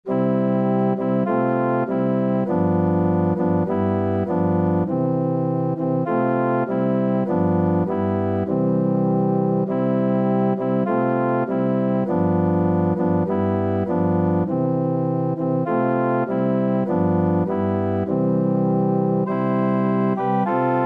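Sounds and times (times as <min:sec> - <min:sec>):
organ: 0:00.1 - 0:20.8.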